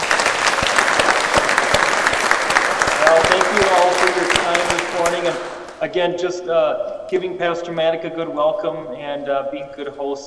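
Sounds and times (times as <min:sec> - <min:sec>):
church congregation clapping during a service: 0:00.0 - 0:05.8
speech: 0:03.2 - 0:10.2.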